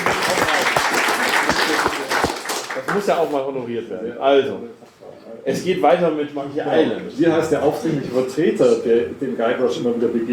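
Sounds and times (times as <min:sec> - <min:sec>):
audience applause at a live quiz show about video games: 0:00.0 - 0:03.4
speech: 0:03.0 - 0:10.3.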